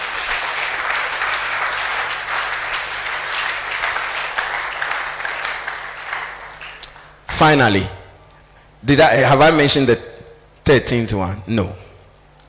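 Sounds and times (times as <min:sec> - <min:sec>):
church audience applauding: 0:00.0 - 0:07.3
speech: 0:07.4 - 0:08.0, 0:08.8 - 0:10.1, 0:10.7 - 0:11.8.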